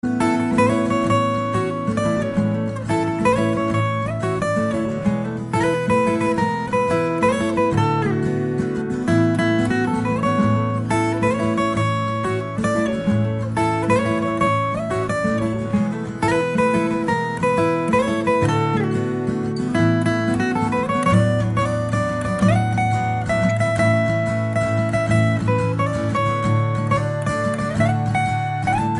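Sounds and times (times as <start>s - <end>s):
instrumental music: 0.0s - 28.9s.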